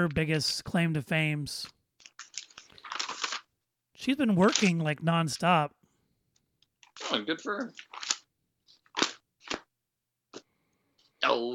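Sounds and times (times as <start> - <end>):
speech: 0.0 - 1.8, 4.0 - 5.8, 7.0 - 7.9, 11.4 - 11.5
paper notes being rustled and shuffled: 2.0 - 3.5, 4.3 - 5.6, 6.8 - 9.7.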